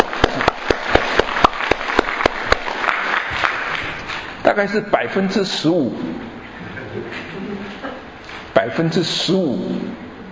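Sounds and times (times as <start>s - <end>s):
audience applause: 0.0s - 4.1s
speech: 4.5s - 6.4s, 7.0s - 10.0s.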